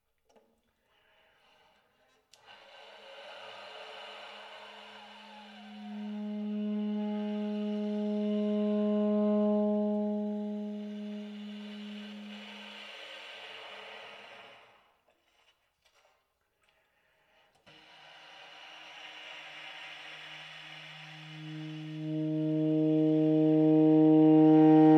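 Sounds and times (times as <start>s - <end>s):
baritone saxophone air tones shifting from bright to dark on low, middle and high notes: 4.0s - 13.0s, 20.0s - 24.9s.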